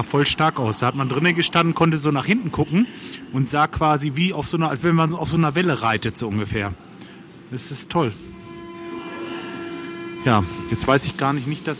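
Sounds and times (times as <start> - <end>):
speech: 0.0 - 8.4, 10.2 - 11.7
old train with separate carriages passing: 7.6 - 11.7
sustained tonal whine: 7.6 - 11.7.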